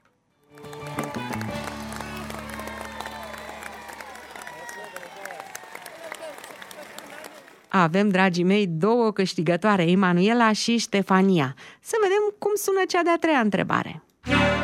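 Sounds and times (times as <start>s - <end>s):
group applauding: 0.4s - 8.0s
speech: 7.8s - 14.6s.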